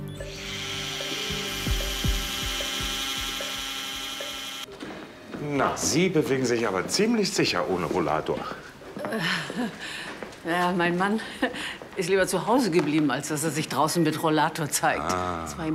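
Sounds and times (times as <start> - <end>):
surgical bone saw cutting: 0.3 - 4.7
speech: 5.7 - 15.7.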